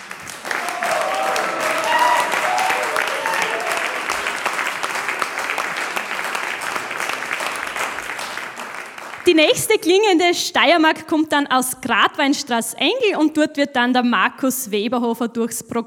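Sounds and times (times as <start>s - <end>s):
audience applause: 0.0s - 9.4s
whoops from audience: 0.4s - 4.4s
speech: 9.3s - 15.8s.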